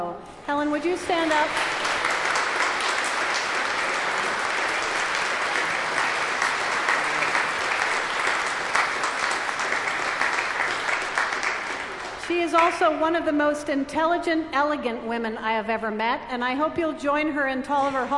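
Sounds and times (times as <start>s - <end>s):
speech: 0.0s - 1.9s, 12.5s - 18.1s
crowd applause: 1.0s - 12.8s.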